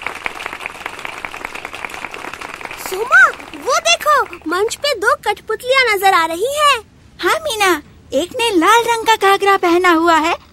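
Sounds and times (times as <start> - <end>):
audience clapping before a puppet show: 0.0 - 4.9
speech: 2.9 - 10.4.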